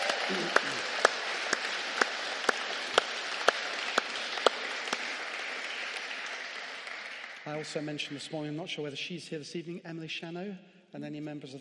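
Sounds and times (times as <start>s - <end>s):
audience applause: 0.0s - 8.4s
speech: 0.3s - 0.9s, 7.5s - 11.5s.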